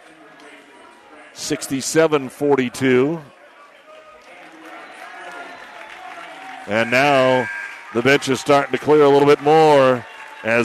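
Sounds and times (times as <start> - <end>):
speech: 1.4 - 3.4, 6.7 - 10.6
basketball crowd applauding: 3.6 - 10.6.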